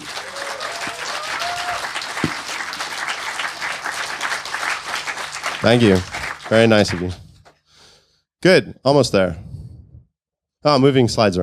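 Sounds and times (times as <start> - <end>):
audience applause: 0.0 - 7.3
speech: 5.6 - 7.2, 8.4 - 9.4, 10.6 - 11.4.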